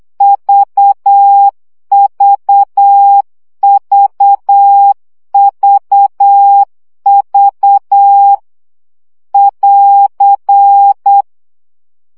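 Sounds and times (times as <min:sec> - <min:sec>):
Morse code practice beeps: 0:00.2 - 0:08.4, 0:09.4 - 0:11.2.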